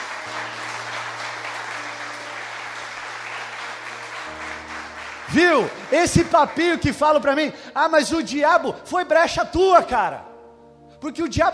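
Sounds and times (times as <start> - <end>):
audience applauding: 0.0 - 7.4
speech: 5.3 - 10.3, 11.0 - 11.5.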